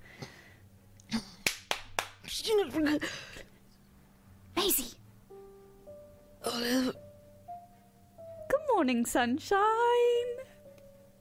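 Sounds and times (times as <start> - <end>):
loud hand clapping: 1.4 - 2.3
speech: 2.3 - 3.4, 6.6 - 7.0, 8.8 - 10.2.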